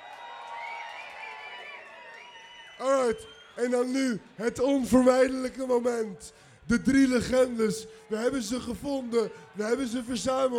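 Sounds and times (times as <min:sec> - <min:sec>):
festival crowd cheering and applauding for a DJ at an outdoor metal event: 0:00.0 - 0:10.5
speech: 0:02.8 - 0:10.5.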